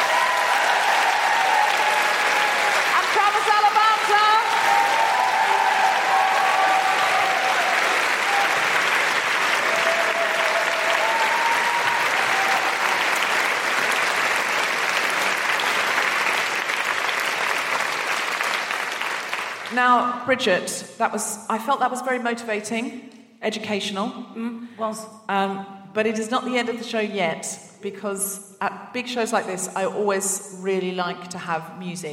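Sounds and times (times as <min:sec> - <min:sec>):
scattered whoops and cheers: 0:00.0 - 0:03.0, 0:04.2 - 0:08.9, 0:09.6 - 0:13.4
audience applause: 0:00.0 - 0:19.7
speech: 0:19.8 - 0:32.1.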